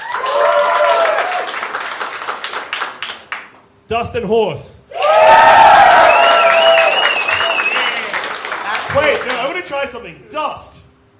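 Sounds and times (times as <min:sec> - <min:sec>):
audience cheering: 0:00.0 - 0:02.4, 0:04.9 - 0:09.6
audience applauding: 0:00.0 - 0:03.6, 0:05.0 - 0:09.7
speech: 0:03.9 - 0:05.5, 0:09.0 - 0:10.8.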